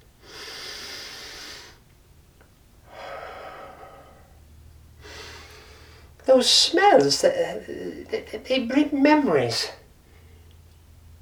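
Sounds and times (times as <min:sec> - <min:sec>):
deep breaths drawn in through the nose: 0:00.2 - 0:01.8, 0:02.9 - 0:04.4, 0:05.0 - 0:06.1
speech: 0:06.3 - 0:09.8.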